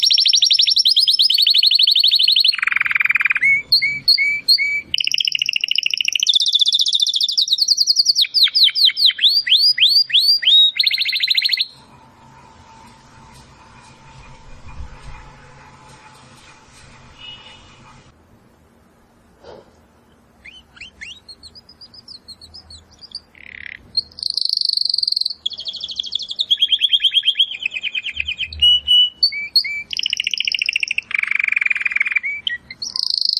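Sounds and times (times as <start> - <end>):
domestic canary whistles and trills: 0.0 - 11.8, 20.4 - 33.3
faint low hum: 11.7 - 24.1.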